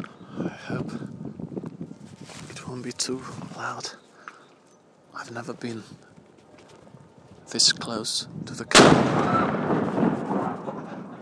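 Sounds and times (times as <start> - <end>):
speech: 2.7 - 4.0, 5.2 - 6.1, 7.5 - 10.0
noon cannon firing from tower: 8.7 - 11.1.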